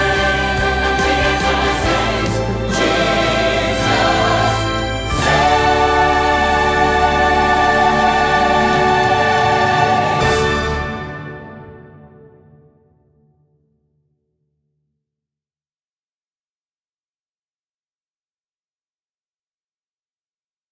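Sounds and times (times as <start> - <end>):
accompaniment music: 0.0 - 12.9.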